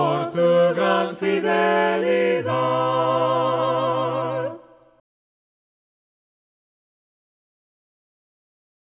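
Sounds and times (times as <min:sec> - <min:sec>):
voices singing hymns a cappella: 0:00.0 - 0:05.0.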